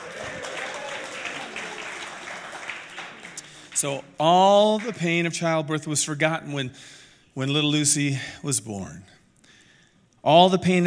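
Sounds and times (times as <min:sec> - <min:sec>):
audience applause: 0:00.0 - 0:04.1
speech: 0:03.8 - 0:09.2, 0:10.2 - 0:10.8.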